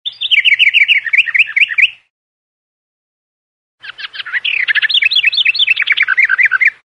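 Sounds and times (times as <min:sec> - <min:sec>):
birds twittering and chirping: 0:00.1 - 0:02.1, 0:03.8 - 0:06.8.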